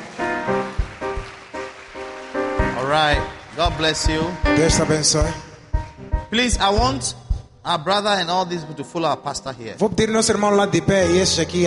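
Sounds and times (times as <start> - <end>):
audience applauding: 0.0 - 6.1
speech: 2.9 - 5.5, 6.3 - 11.6.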